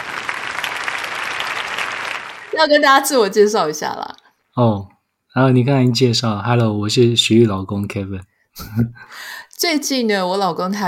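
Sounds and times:
canned applause sound effect: 0.0s - 2.6s
speech: 2.6s - 10.8s.

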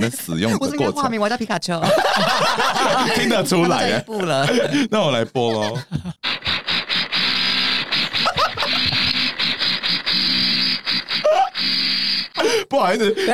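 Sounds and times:
speech: 0.0s - 6.2s, 12.7s - 13.3s
laughter: 1.8s - 7.2s, 7.8s - 9.9s, 12.4s - 13.3s
electric drill whirring: 6.2s - 12.4s.

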